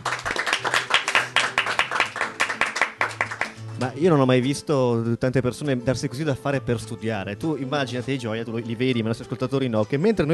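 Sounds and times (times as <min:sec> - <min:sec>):
applause: 0:00.0 - 0:03.8
speech: 0:03.8 - 0:10.3.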